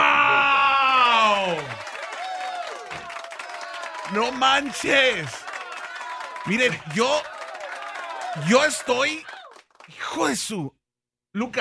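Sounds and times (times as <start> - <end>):
audience applause: 0.8 - 10.4
speech: 4.1 - 5.4, 6.4 - 7.3, 8.4 - 9.3, 9.9 - 10.8, 11.4 - 11.5.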